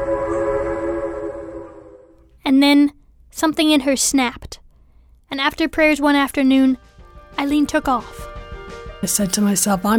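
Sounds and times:
train horn blowing: 0.0s - 2.2s
speech: 2.5s - 4.6s, 5.3s - 8.3s, 9.0s - 9.9s.

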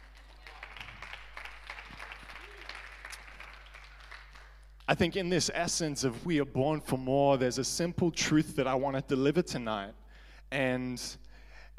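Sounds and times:
audience clapping: 0.0s - 5.2s
speech: 4.9s - 11.2s.

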